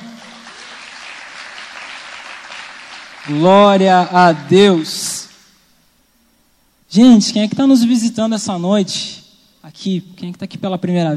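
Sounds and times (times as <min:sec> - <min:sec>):
audience applauding: 0:00.0 - 0:04.9
speech: 0:03.2 - 0:05.1, 0:06.9 - 0:11.1.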